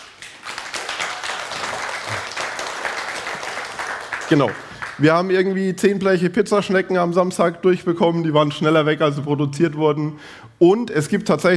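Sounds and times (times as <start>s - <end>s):
applause: 0.0s - 5.3s
speech: 4.3s - 11.5s.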